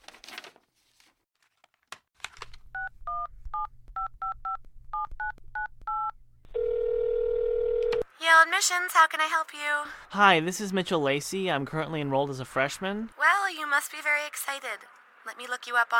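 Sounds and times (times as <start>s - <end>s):
telephone number being dialed: 2.8s - 8.0s
speech: 8.4s - 15.9s.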